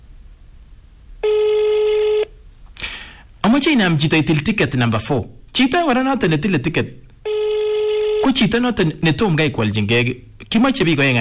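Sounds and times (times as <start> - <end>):
telephone ringing: 1.2 - 2.3, 7.2 - 8.6
speech: 3.5 - 7.0, 8.3 - 11.1.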